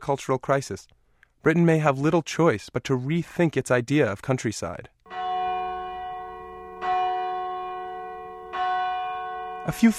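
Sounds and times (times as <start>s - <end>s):
speech: 0.0s - 5.0s, 9.6s - 9.9s
church bells ringing for Sunday service: 5.1s - 9.9s.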